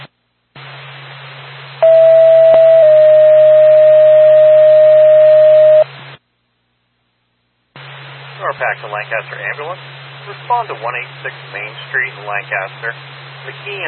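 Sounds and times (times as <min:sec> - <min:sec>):
dispatch radio alert tone: 0:01.8 - 0:05.8
speech: 0:08.6 - 0:13.8.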